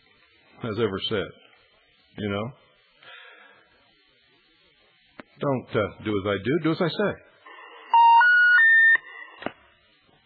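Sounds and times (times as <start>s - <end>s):
speech: 0.6s - 1.4s, 2.2s - 2.6s, 5.4s - 7.3s
telephone line tone from phone left unhung: 7.9s - 9.0s.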